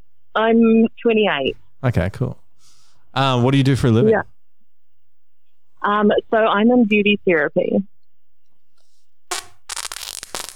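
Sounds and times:
speech: 0:00.4 - 0:02.4, 0:03.1 - 0:04.3, 0:05.8 - 0:07.9
fart into a microphone: 0:09.3 - 0:10.5.

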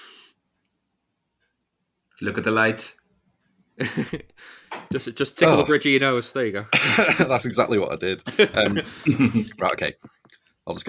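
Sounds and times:
speech: 0:02.2 - 0:03.0, 0:03.8 - 0:10.8
laughter: 0:03.8 - 0:04.3, 0:08.2 - 0:09.7
person sneezing: 0:05.4 - 0:05.8.

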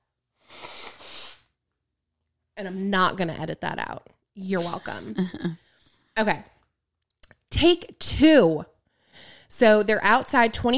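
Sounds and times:
person blowing nose: 0:00.4 - 0:01.5, 0:04.6 - 0:05.2
speech: 0:02.6 - 0:05.6, 0:06.2 - 0:06.5, 0:07.5 - 0:10.7.

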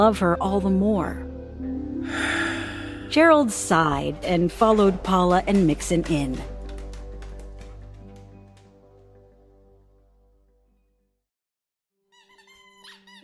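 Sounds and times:
speech: 0:00.0 - 0:01.3, 0:02.0 - 0:02.4, 0:03.1 - 0:06.5
dog chewing a squeaky toy ball: 0:12.2 - 0:13.2.

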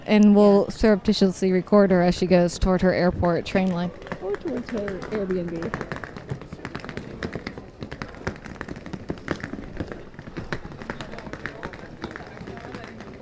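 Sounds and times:
murmur of voices: 0:00.0 - 0:13.2
speech: 0:00.1 - 0:06.1
suitcase rolled over cobblestones: 0:03.1 - 0:13.2.

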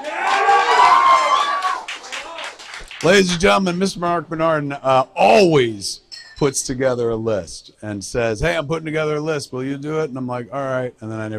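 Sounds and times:
audience cheering and whooping: 0:00.0 - 0:02.8
audience clapping: 0:00.0 - 0:03.6
speech: 0:03.0 - 0:11.3.

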